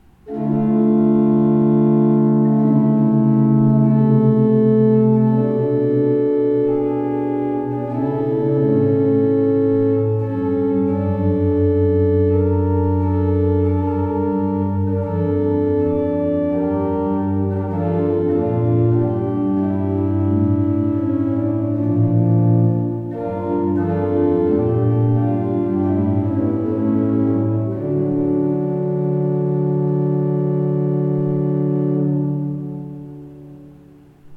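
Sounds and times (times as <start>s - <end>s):
used Beckerath pipe organ: 0.0s - 34.3s.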